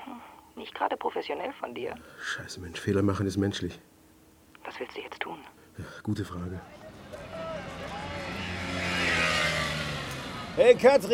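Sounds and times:
speech: 0.6s - 3.9s, 4.6s - 6.8s, 10.6s - 11.1s
car driving up: 7.1s - 10.6s.

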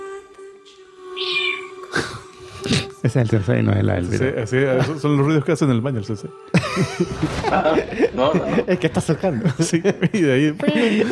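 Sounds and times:
cat meowing: 1.2s - 1.8s
speech: 2.6s - 11.0s
laughter: 4.6s - 5.4s, 6.5s - 11.0s.

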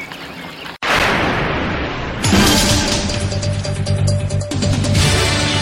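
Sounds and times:
heavy blast in a medieval battle scene: 0.9s - 3.7s
medieval battle clashing and rumbling: 0.9s - 5.4s.

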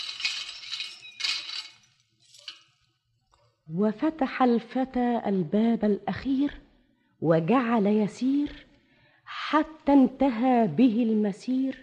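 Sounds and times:
palace keys jingling as they are handed over: 0.0s - 2.8s
speech: 3.7s - 6.6s, 7.2s - 8.6s, 9.5s - 11.8s.

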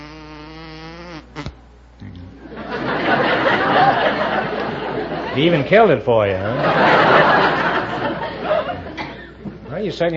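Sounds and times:
man humming in imitation of a bumblebee: 0.0s - 2.5s
crowd laughter: 2.4s - 9.7s
speech: 5.4s - 7.6s, 9.8s - 10.1s.

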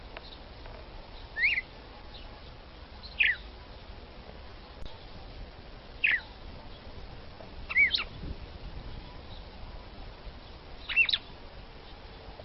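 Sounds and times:
red-cowled cardinal female singing short sweeping whistles: 1.4s - 1.7s, 3.0s - 3.4s, 6.0s - 6.3s, 7.7s - 8.1s, 10.8s - 11.3s.

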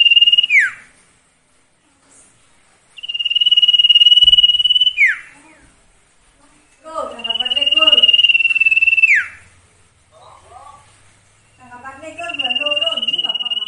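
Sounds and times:
song with repeated pulsed trills: 3.0s - 5.3s, 6.6s - 9.4s, 11.4s - 13.6s.

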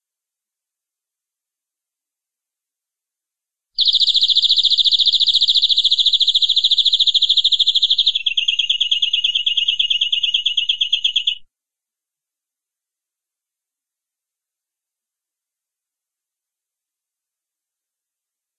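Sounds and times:
canary rolling trill song: 3.8s - 11.4s.

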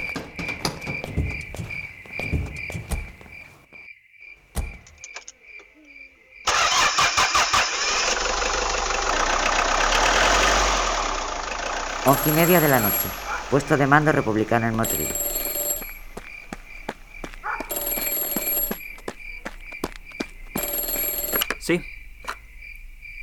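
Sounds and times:
crickets chirping at night: 0.0s - 6.8s, 11.8s - 23.2s
truck engine starting at night: 6.4s - 15.1s
speech: 12.1s - 15.2s, 21.7s - 21.9s.

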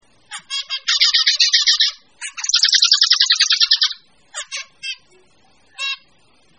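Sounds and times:
birds singing: 0.3s - 5.2s.

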